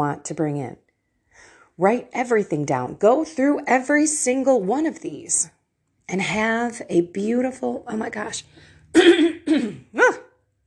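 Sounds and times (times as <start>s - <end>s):
speech: 0.0s - 0.8s, 1.4s - 10.2s
harsh coughing up phlegm: 8.8s - 10.0s.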